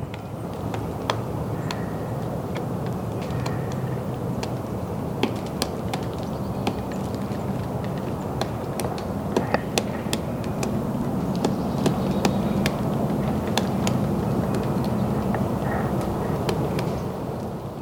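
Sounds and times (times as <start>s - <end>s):
pileated woodpecker pecking on a tree: 0.0s - 17.6s
steady low rumble of noise: 0.0s - 17.7s.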